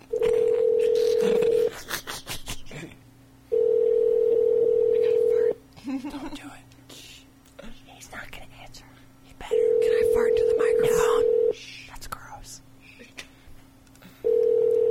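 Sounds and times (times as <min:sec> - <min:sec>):
electronic phone dialing tone: 0:00.1 - 0:01.7, 0:03.5 - 0:05.3, 0:09.5 - 0:11.6, 0:14.2 - 0:14.8.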